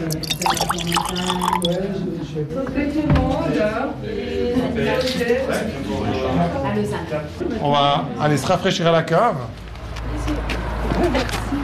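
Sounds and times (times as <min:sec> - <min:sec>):
Grand Chasselas wine poured into a small glass: 0:00.0 - 0:01.9
speech: 0:00.0 - 0:09.6, 0:11.0 - 0:11.5.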